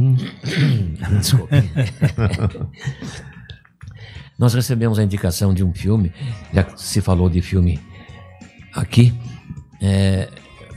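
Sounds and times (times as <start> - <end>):
person clearing throat: 0.0 - 1.2
speech: 0.3 - 3.3, 4.4 - 7.9, 8.7 - 10.4
laughter: 0.7 - 3.5.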